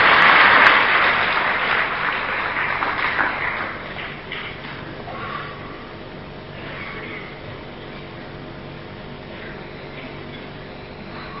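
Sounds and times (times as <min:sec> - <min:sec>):
audience clapping: 0:00.0 - 0:04.9.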